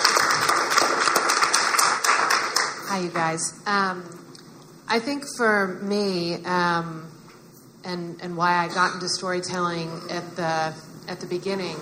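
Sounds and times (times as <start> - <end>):
audience applause welcoming a guest at a storytelling event: 0.0 - 2.9
speech: 3.0 - 4.3, 4.9 - 7.2, 7.8 - 11.8.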